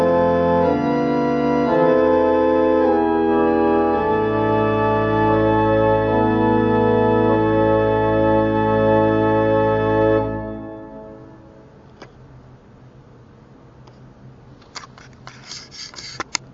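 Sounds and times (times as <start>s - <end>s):
organ: 0.0s - 11.7s.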